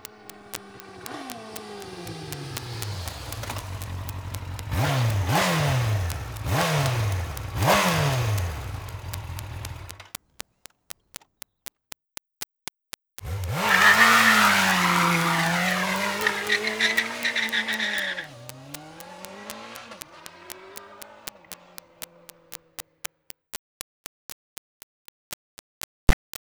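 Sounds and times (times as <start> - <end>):
Yamaha YZF R1 motorcycle engine: 0.0 - 10.2, 13.2 - 23.0.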